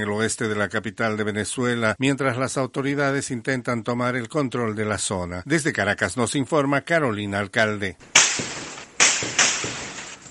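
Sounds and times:
speech: 0.0s - 8.6s
gunshots: 8.0s - 10.2s.

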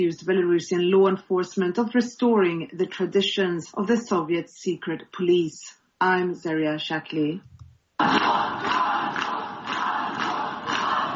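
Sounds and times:
speech: 0.0s - 9.0s
crowd of protesters outside a jail shouting and chanting: 8.0s - 11.1s.

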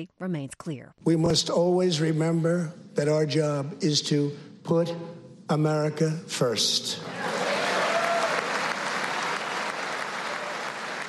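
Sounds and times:
speech: 0.0s - 7.3s
audience applause and cheers: 7.0s - 11.0s.

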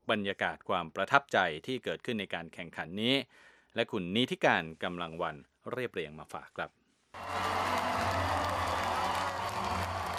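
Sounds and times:
speech: 0.1s - 7.9s
crowd cheering in concert hall at student robotics competition: 7.2s - 10.1s.

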